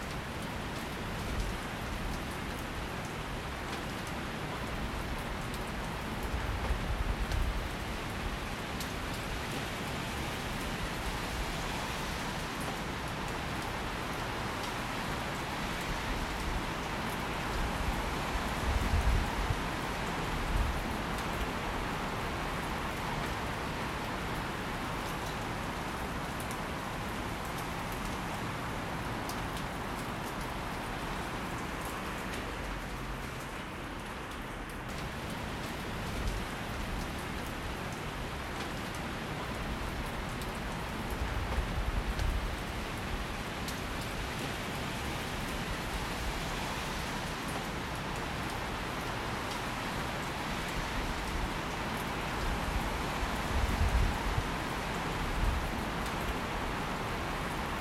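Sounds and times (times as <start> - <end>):
rain: 0.0 - 57.8.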